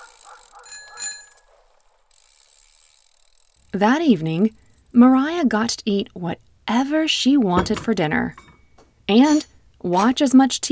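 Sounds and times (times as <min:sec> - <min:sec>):
bicycle bell ringing: 0:00.0 - 0:01.5
bicycle tires rolling and clicking mechanism: 0:00.0 - 0:05.0
speech: 0:03.7 - 0:08.5, 0:09.1 - 0:10.7.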